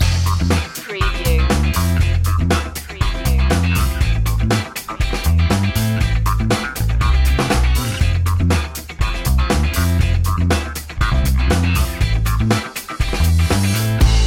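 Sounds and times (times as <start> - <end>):
funk music: 0.0 - 14.2.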